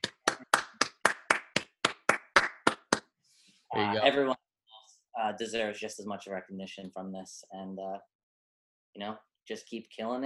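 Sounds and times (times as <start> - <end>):
hand claps as a round of applause: 0.0 - 3.2
speech: 3.8 - 4.4, 5.2 - 8.1, 9.0 - 10.2.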